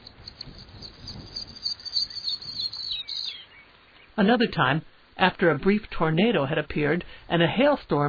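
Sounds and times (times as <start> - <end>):
pipit singing: 0.0 - 4.5
speech: 4.2 - 8.0.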